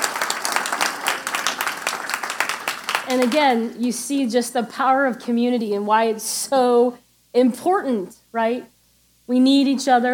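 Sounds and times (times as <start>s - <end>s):
audience clapping: 0.0s - 3.6s
speech: 3.1s - 8.7s, 9.3s - 10.1s.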